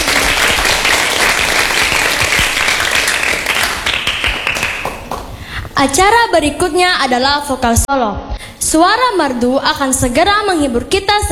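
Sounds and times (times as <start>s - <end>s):
audience clapping: 0.0s - 5.4s
speech: 5.8s - 11.3s.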